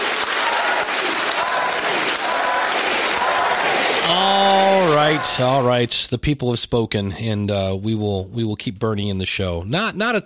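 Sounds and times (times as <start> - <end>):
crowd murmuring and chattering outside window: 0.0 - 5.8
speech: 5.1 - 10.2.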